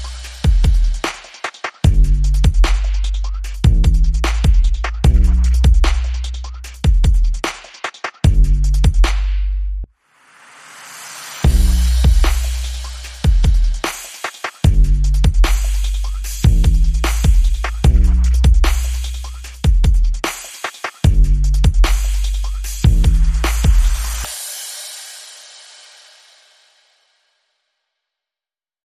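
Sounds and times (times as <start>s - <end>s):
bass: 0.0s - 1.0s, 1.8s - 7.4s, 8.2s - 9.9s, 11.4s - 13.8s, 14.6s - 20.2s, 21.0s - 24.3s
drums: 0.0s - 9.5s, 10.6s - 27.0s.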